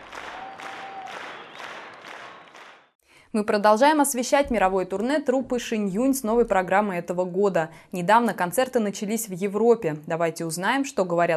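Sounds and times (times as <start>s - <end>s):
audience applause: 0.0s - 3.0s
faint whistle-like tone: 0.4s - 2.5s
speech: 3.3s - 11.3s.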